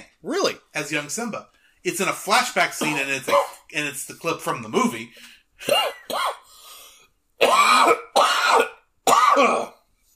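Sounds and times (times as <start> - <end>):
speech: 0.2 - 6.4, 9.4 - 9.7
person clearing throat and coughing: 2.8 - 3.7, 5.6 - 6.5, 7.4 - 9.9.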